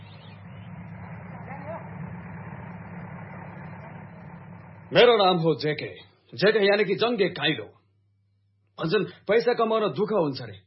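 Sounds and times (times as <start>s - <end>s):
bus arriving and idling: 0.0s - 5.3s
speech: 4.9s - 7.8s, 8.8s - 10.6s.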